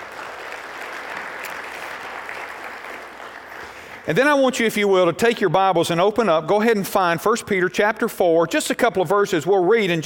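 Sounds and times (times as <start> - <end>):
church congregation applauding at a worship service: 0.0 - 5.0
speech: 4.1 - 10.0.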